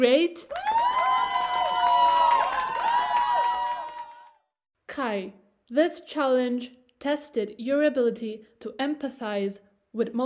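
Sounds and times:
speech: 0.0s - 0.8s, 5.0s - 10.2s
audience applause and cheering: 0.5s - 4.5s.

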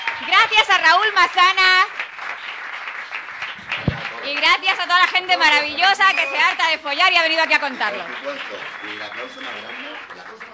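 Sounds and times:
audience applause: 0.0s - 10.5s
speech: 0.6s - 1.9s, 4.2s - 10.5s
voices talking and calling out: 3.9s - 10.0s.

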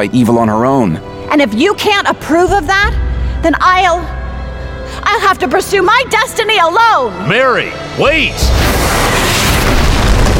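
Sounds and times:
speech: 0.0s - 4.2s, 4.9s - 9.1s
solid rock smashing: 8.5s - 10.3s.

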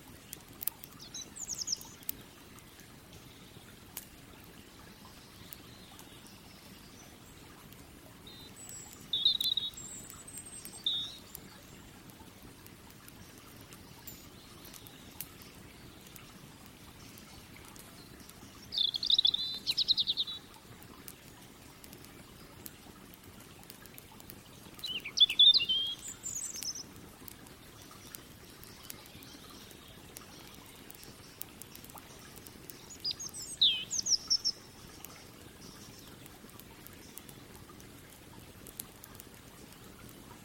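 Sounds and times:
river water flowing: 0.0s - 40.4s
birds chirping: 8.3s - 11.7s, 13.3s - 20.6s, 24.6s - 26.9s, 28.6s - 36.2s.

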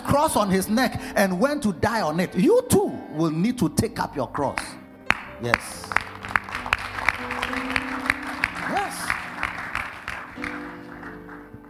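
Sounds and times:
speech: 0.2s - 4.8s, 5.4s - 5.9s
audience clapping: 5.1s - 11.6s.

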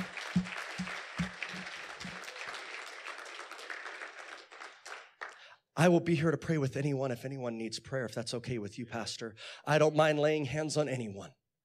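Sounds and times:
crowd applause: 0.0s - 5.5s
speech: 5.8s - 11.4s.

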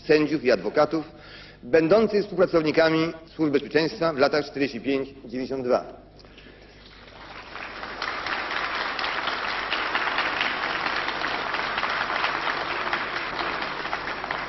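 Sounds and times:
speech: 0.1s - 6.0s
applause in parliament: 6.7s - 14.4s.

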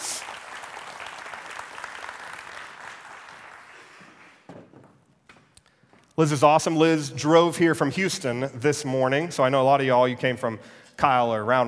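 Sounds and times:
audience round of applause: 0.0s - 4.5s
speech: 6.2s - 11.6s.

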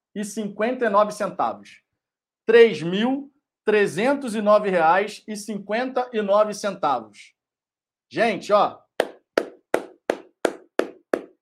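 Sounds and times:
speech: 0.2s - 1.8s, 2.5s - 7.4s, 8.1s - 9.1s
hand clapping: 9.0s - 11.4s.

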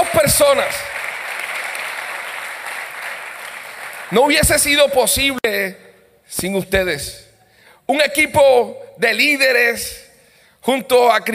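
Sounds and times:
audience applause: 0.0s - 4.4s
speech: 0.3s - 0.9s, 4.1s - 7.3s, 7.9s - 10.0s, 10.6s - 11.3s.

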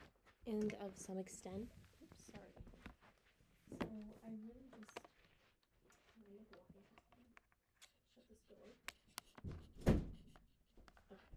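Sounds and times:
soft shuffling: 0.0s - 7.4s
speech: 0.5s - 2.4s
door closing with a heavy low thud: 9.5s - 10.2s.

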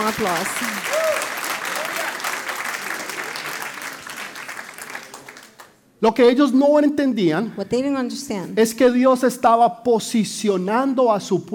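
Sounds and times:
audience applause: 0.0s - 5.7s
speech: 0.1s - 1.1s, 6.0s - 11.5s.

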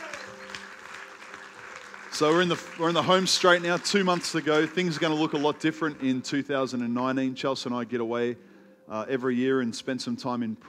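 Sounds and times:
audience clapping: 0.0s - 6.0s
speech: 2.2s - 10.6s.

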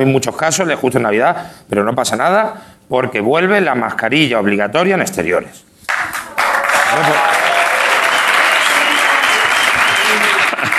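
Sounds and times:
speech: 0.0s - 5.7s, 6.9s - 7.4s
audience applause: 5.9s - 10.7s.

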